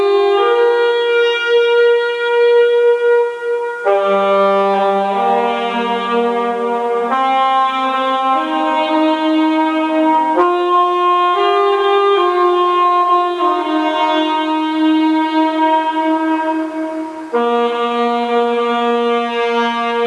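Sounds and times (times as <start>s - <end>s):
saxophone: 0.0s - 20.0s.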